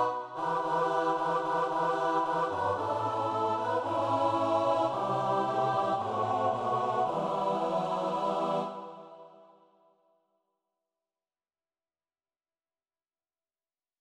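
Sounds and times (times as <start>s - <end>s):
mass music: 0.0s - 9.2s.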